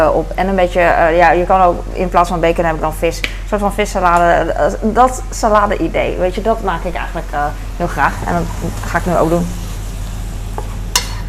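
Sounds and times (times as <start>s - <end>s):
speech: 0.0s - 9.6s
leek frying in a pan: 5.8s - 11.2s
utensil scraping a pan: 8.0s - 11.2s
utensil clacking on a pan: 10.6s - 11.2s.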